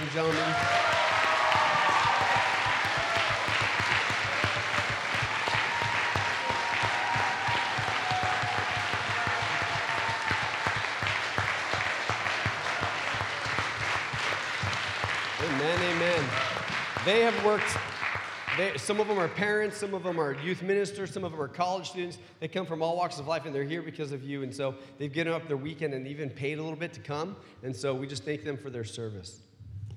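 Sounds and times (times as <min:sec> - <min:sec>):
audience applause: 0:00.0 - 0:20.4
speech: 0:00.2 - 0:00.8, 0:17.0 - 0:17.9, 0:18.6 - 0:29.4.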